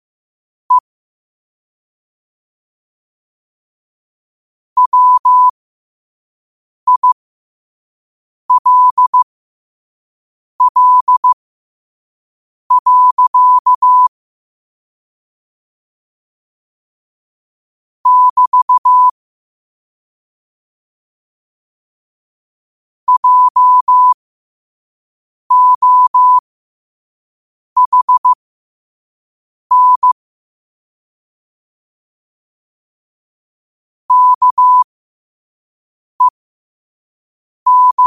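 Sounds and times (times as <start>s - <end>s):
morse code at 5 wpm: 4.8s - 5.5s, 6.9s - 7.2s, 8.5s - 9.2s, 10.6s - 11.4s, 12.7s - 14.1s, 18.1s - 19.1s, 23.1s - 24.2s, 25.5s - 26.4s, 27.8s - 28.4s, 29.7s - 30.2s, 34.1s - 34.9s, 37.7s - 38.0s.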